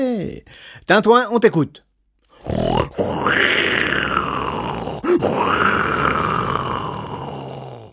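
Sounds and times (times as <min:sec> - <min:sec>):
speech: 0:00.0 - 0:01.8, 0:02.4 - 0:03.0, 0:05.2 - 0:05.6
voice imitating a dinosaur: 0:02.3 - 0:07.9.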